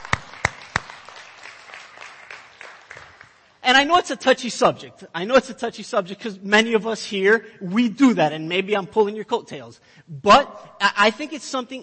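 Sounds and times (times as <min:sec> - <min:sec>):
audience applauding: 0:00.0 - 0:03.5
speech: 0:03.7 - 0:11.8.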